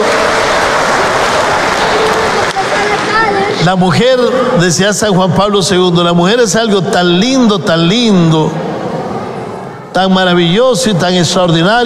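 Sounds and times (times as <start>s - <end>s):
crowd applauding: 0.0s - 3.9s
speech: 3.6s - 8.6s, 10.0s - 11.8s.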